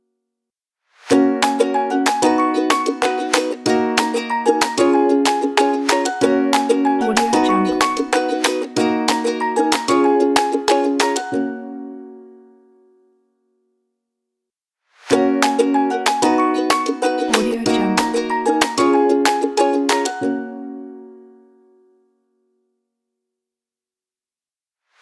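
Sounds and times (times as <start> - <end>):
happy brand logo music: 1.1 - 11.8, 15.1 - 20.8.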